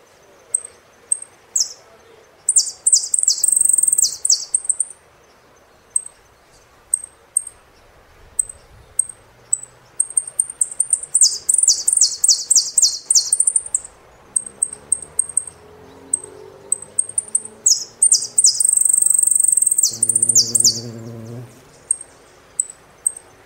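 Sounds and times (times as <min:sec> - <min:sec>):
saffron finch singing: 0:00.5 - 0:05.0, 0:05.9 - 0:23.4.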